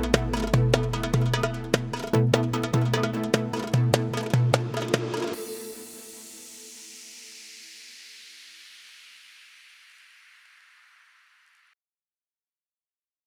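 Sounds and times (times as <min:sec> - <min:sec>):
arabesk oriental belly dance music: 0:00.0 - 0:06.8.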